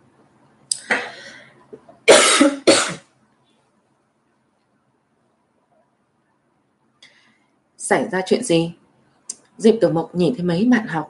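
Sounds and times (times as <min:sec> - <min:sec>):
person with a slight cough coughing harshly: 0:02.1 - 0:03.0
speech: 0:07.9 - 0:08.8, 0:09.6 - 0:11.0.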